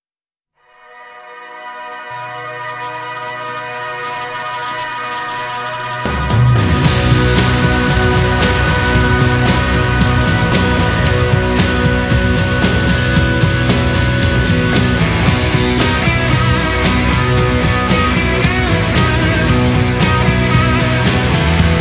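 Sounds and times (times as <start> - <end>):
instrumental music: 0.8 - 21.7.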